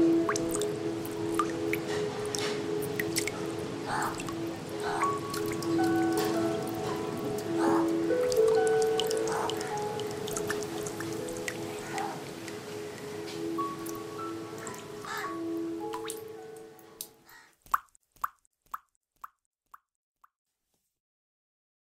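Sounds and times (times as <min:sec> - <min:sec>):
soundscape: 0:00.0 - 0:17.2.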